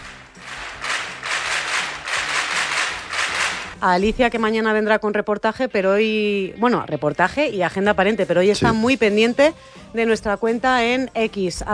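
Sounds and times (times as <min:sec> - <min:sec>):
applause from a small group: 0:00.0 - 0:03.8
speech: 0:03.8 - 0:11.7.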